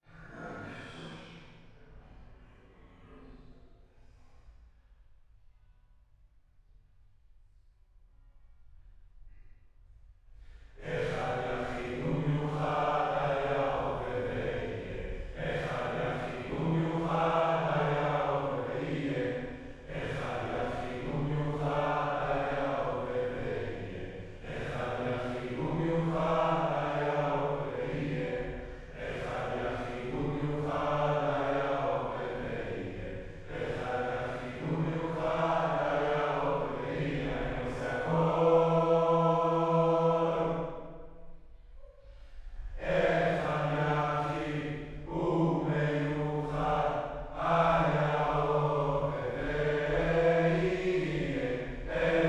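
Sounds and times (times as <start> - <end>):
choir singing: 10.8 - 41.0, 42.6 - 52.2.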